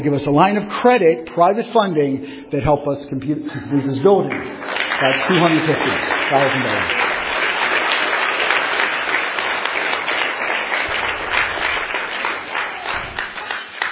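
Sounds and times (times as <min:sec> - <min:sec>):
speech: 0:00.0 - 0:07.1
audience applause and clapping: 0:04.1 - 0:13.9.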